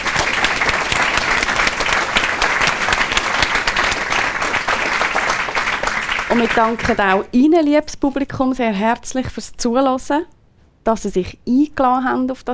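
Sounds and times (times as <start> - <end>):
audience applause: 0.0 - 7.3
speech: 6.4 - 12.5.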